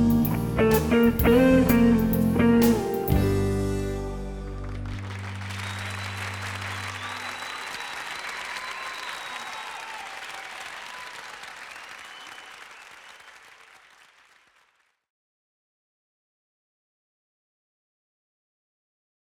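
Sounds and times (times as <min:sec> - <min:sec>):
lounge music in 6 channels: 0:00.0 - 0:05.4.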